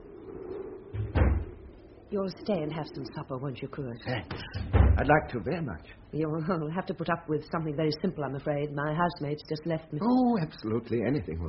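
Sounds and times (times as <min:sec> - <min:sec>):
brief low rumble: 0:00.0 - 0:04.0
steady low hum: 0:00.0 - 0:09.9
door swinging shut with a heavy thud: 0:00.9 - 0:01.7, 0:04.3 - 0:05.2
speech: 0:02.1 - 0:11.4.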